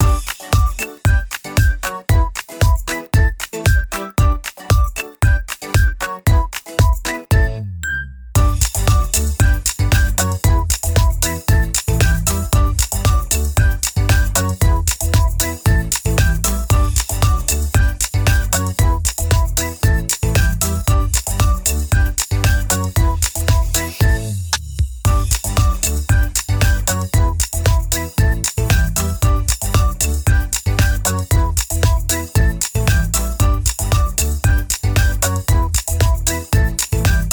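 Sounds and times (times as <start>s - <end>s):
ukulele: 0.0s - 24.5s, 25.1s - 37.3s.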